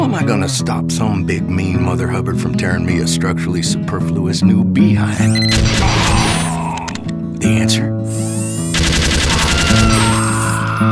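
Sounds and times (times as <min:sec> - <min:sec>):
speech: 0:00.2 - 0:06.4, 0:07.4 - 0:08.3
rapid machine-gun fire from a heavy-caliber, tripod-mounted gun: 0:05.5 - 0:06.5, 0:08.7 - 0:10.2.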